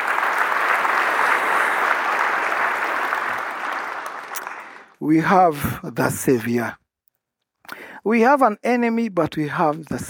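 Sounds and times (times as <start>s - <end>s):
audience clapping hands: 0.0s - 5.0s
speech: 5.0s - 6.8s, 8.0s - 10.0s.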